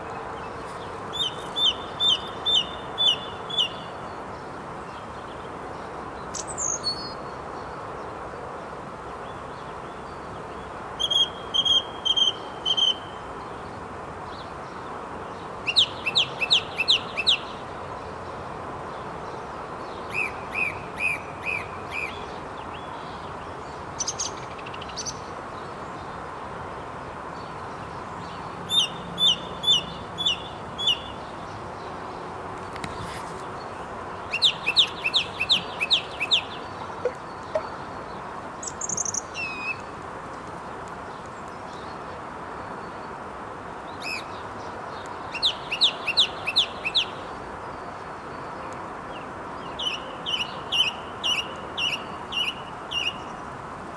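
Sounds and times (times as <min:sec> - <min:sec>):
bird singing: 0:00.1 - 0:04.2, 0:06.2 - 0:07.7, 0:09.2 - 0:13.7, 0:14.3 - 0:17.6, 0:19.3 - 0:26.1, 0:27.4 - 0:31.9, 0:33.6 - 0:39.9, 0:43.9 - 0:53.4.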